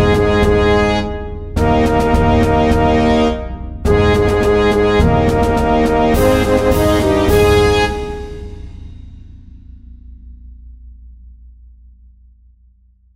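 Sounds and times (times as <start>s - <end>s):
fanfare and march: 0.0s - 8.8s.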